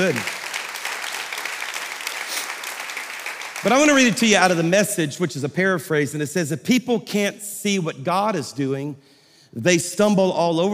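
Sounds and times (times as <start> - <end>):
speech: 0.0 - 0.4, 3.6 - 10.7
audience clapping: 0.0 - 5.0.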